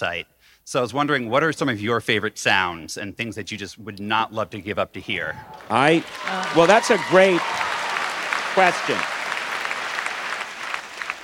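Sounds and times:
speech: 0.0 - 7.7, 8.6 - 9.2
audience applause: 5.4 - 11.2.

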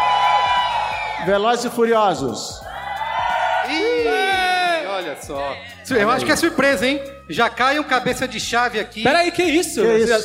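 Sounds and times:
studio audience cheering and shouting: 0.0 - 6.4
speech: 1.2 - 2.7, 3.7 - 4.4, 5.0 - 10.2.

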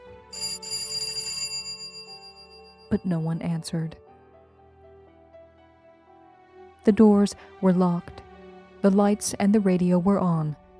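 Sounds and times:
doorbell ringing: 0.3 - 3.2
speech: 2.9 - 4.1, 6.8 - 8.2, 8.8 - 10.6.

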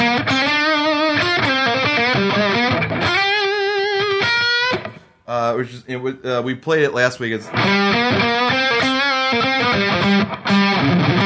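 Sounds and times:
crunchy distorted electric guitar playing a bluesy lead line: 0.0 - 5.0, 7.5 - 11.2
speech: 5.6 - 11.2.

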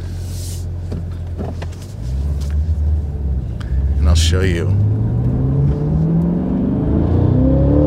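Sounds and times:
car engine humming: 0.0 - 7.8
speech: 4.3 - 4.9.

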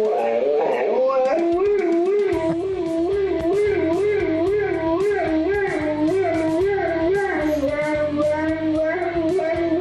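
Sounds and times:
dog howling mimicking a siren: 0.0 - 9.7
low rumbling hum: 2.4 - 9.7.

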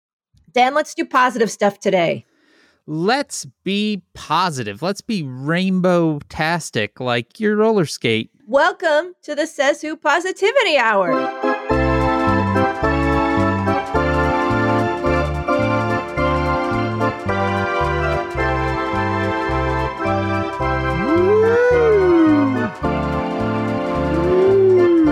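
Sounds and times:
speech: 0.5 - 2.3, 2.9 - 11.5
loud rhythmic music with a pulsing bass line: 11.1 - 25.0
ghostly howling voice: 21.0 - 22.7, 24.1 - 25.0.

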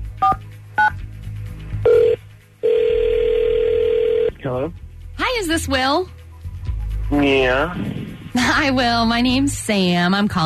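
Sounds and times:
telephone line ringing tone: 1.8 - 4.3
speech: 4.5 - 4.8, 5.4 - 6.2, 7.1 - 10.4.

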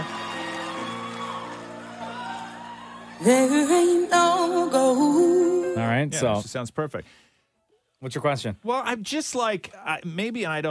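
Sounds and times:
live crowd cheering with whoops: 0.0 - 4.1
speech: 3.2 - 7.2, 8.0 - 10.6.

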